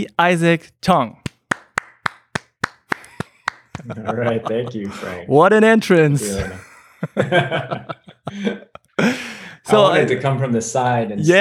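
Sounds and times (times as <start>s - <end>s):
speech: 0.0s - 1.2s, 3.8s - 11.3s
audience applause: 1.5s - 5.0s
laughter: 2.9s - 10.4s.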